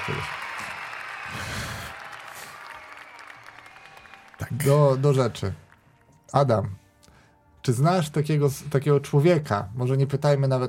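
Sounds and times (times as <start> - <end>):
studio audience applause: 0.0 - 6.1
speech: 4.5 - 5.6, 6.3 - 6.8, 7.6 - 10.6.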